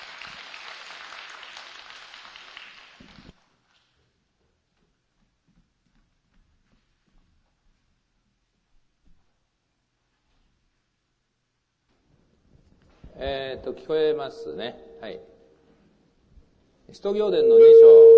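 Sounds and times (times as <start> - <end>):
audience applause welcoming a speaker: 0.0 - 3.3
speech: 13.2 - 15.3, 16.9 - 18.0.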